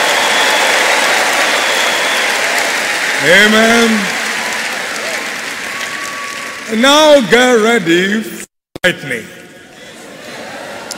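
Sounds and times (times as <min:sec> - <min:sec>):
audience clapping in praise: 0:00.0 - 0:07.7
speech: 0:03.2 - 0:04.1, 0:06.7 - 0:09.4.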